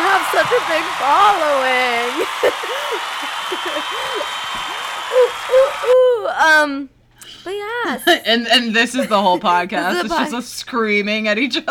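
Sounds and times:
crowd applause: 0.0 - 6.2
laughter: 0.0 - 6.3, 8.1 - 10.4
whoops and cheers: 0.0 - 6.4
speech: 0.6 - 11.6.

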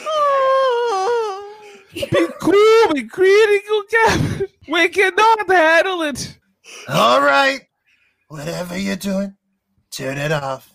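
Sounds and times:
woman whimpering: 0.0 - 2.4
speech: 2.0 - 7.7, 8.3 - 10.7.

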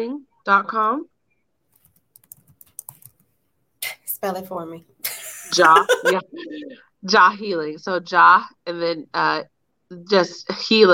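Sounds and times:
speech: 0.0 - 1.1, 4.2 - 4.9, 5.5 - 10.9
computer keyboard typing: 1.7 - 3.3
laughter: 5.1 - 6.8.

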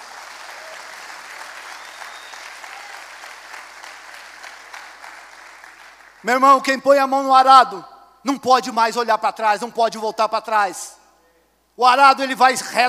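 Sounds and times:
audience applauding: 0.0 - 6.2
speech: 6.2 - 11.0, 11.8 - 12.8.

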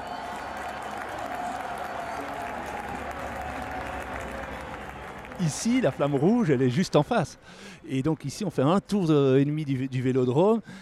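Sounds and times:
crowd cheering and applauding in velodrome: 0.0 - 6.9
speech: 5.4 - 10.7.

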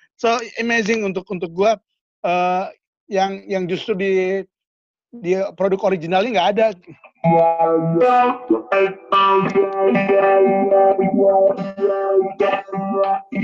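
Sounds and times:
speech: 0.2 - 4.5, 5.1 - 13.4
electric guitar through a wide swirling tri-stereo chorus effect: 6.9 - 13.4.

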